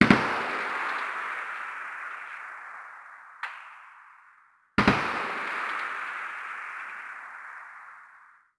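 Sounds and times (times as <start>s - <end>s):
automatic gunfire: 0.0s - 2.5s, 4.8s - 7.8s
combat atmosphere: 0.0s - 8.4s.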